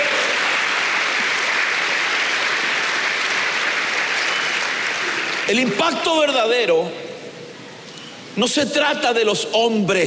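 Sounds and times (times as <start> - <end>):
audience applause: 0.0 - 5.7
speech: 5.5 - 7.0, 8.4 - 10.0.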